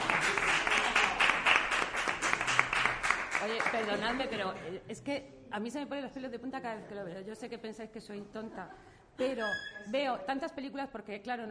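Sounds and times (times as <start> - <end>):
audience applause: 0.0 - 4.0
speech: 3.8 - 11.4.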